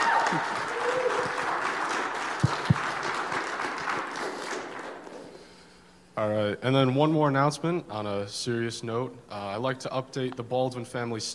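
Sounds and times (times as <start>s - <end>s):
church congregation applauding at a Sunday morning service: 0.0s - 5.6s
speech: 0.3s - 0.6s, 6.3s - 11.3s.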